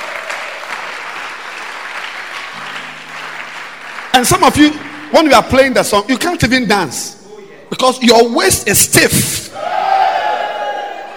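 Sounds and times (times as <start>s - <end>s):
audience clapping: 0.0s - 6.3s
speech: 4.2s - 9.7s.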